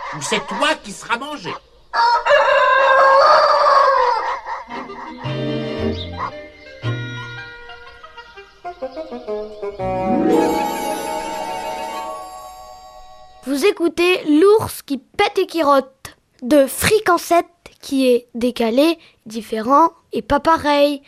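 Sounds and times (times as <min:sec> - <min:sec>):
speech: 0:00.1 - 0:02.6, 0:08.8 - 0:11.4, 0:13.5 - 0:21.0
rooster crowing: 0:01.9 - 0:06.0
short musical jingle with plucked bass: 0:09.8 - 0:13.4.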